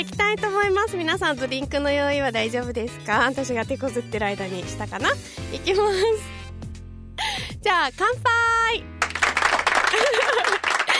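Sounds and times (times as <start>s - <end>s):
speech: 0.0s - 6.4s, 7.6s - 8.9s
applause after a toast: 9.0s - 10.9s
laughter: 9.8s - 10.9s.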